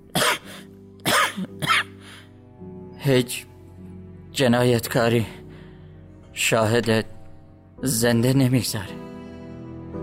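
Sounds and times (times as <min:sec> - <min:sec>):
person clearing throat, choked with emotion: 0:00.1 - 0:02.0
speech: 0:03.0 - 0:03.5, 0:04.4 - 0:05.4, 0:06.4 - 0:07.2, 0:07.8 - 0:09.0.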